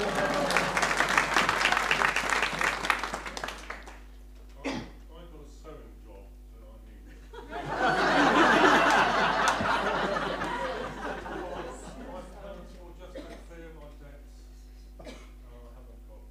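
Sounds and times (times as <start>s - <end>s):
laughter: 0.0s - 3.1s, 7.1s - 12.9s
applause: 0.0s - 4.2s, 8.7s - 11.2s.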